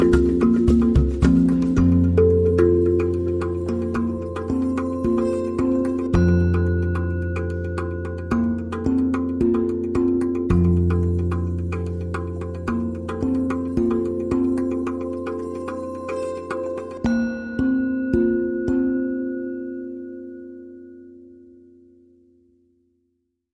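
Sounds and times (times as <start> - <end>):
hang drum jam: 0.0 - 18.9.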